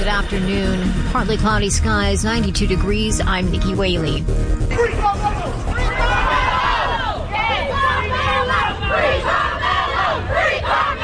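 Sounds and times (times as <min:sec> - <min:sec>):
speech: 0:00.1 - 0:06.2
crowd outside courthouse reacting to verdict: 0:04.7 - 0:11.0.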